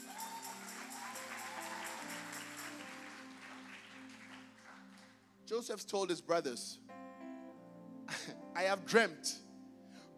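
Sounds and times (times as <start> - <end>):
audience clapping: 0.0 - 5.2
sustained keyboard chords: 2.0 - 10.1
speech: 5.5 - 6.9, 8.6 - 9.4.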